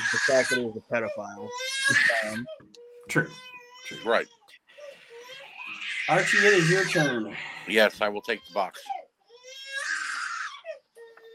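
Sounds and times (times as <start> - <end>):
baby screaming and crying: 0.0 - 2.6, 3.3 - 11.3
speech: 0.1 - 4.4, 6.1 - 9.0.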